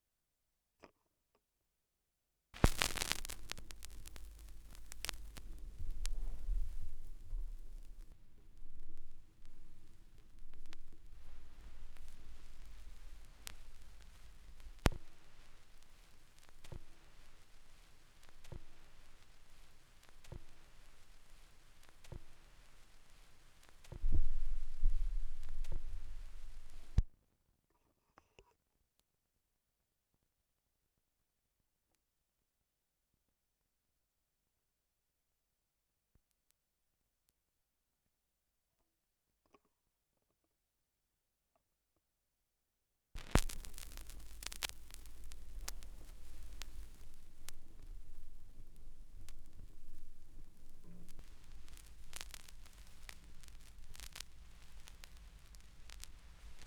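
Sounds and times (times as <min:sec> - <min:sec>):
vinyl record noise: 0:02.6 - 0:27.1, 0:43.2 - 0:56.6.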